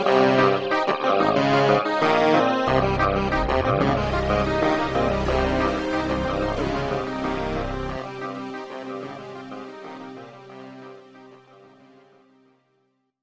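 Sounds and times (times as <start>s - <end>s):
Juno 60 synthesizer: 1.0s - 9.5s.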